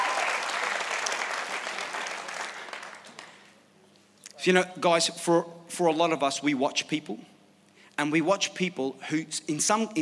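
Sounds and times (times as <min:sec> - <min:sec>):
round of applause: 0:00.0 - 0:03.6
speech: 0:04.4 - 0:07.3, 0:08.0 - 0:10.0.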